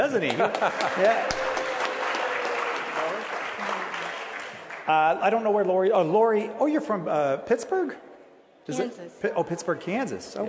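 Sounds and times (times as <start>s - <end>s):
speech: 0.1s - 1.5s, 4.9s - 8.1s, 8.7s - 10.4s
audience applause: 0.2s - 5.4s.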